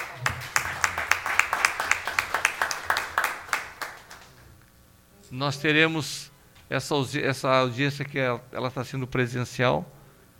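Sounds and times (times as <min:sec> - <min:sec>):
applause in a city council chamber as a tribute during condolences: 0:00.0 - 0:04.5
speech: 0:05.3 - 0:10.0.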